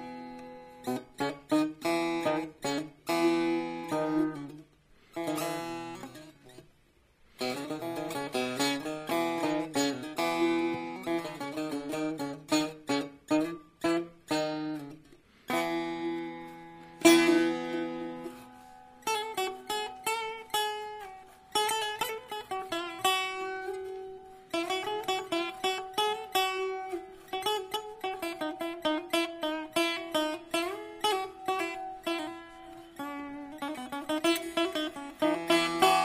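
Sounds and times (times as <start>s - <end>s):
Persian setar of mulberry wood playing: 0.0s - 36.0s.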